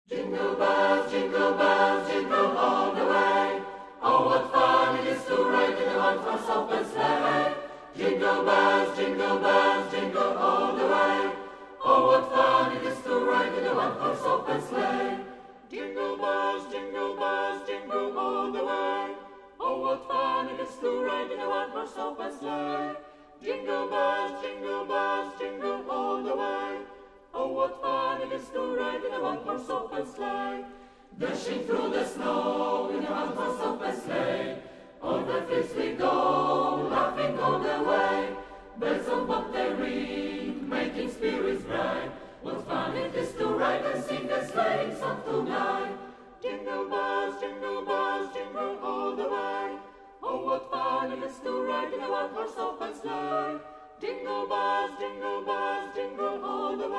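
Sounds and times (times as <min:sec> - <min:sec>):
choir singing: 0:00.0 - 0:56.9.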